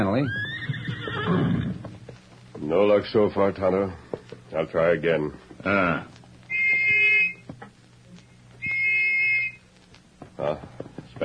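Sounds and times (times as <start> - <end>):
speech: 0.0 - 1.4, 2.7 - 6.2, 10.4 - 11.2
small brass whistle being blown: 6.5 - 7.4, 8.6 - 9.6.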